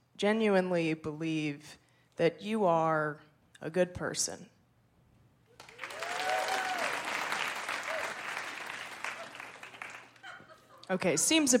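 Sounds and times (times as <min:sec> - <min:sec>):
speech: 0:00.2 - 0:04.5, 0:10.9 - 0:11.5
faint whoops and cheers: 0:05.6 - 0:09.7
audience applause: 0:05.6 - 0:10.3
laughter: 0:09.0 - 0:11.1.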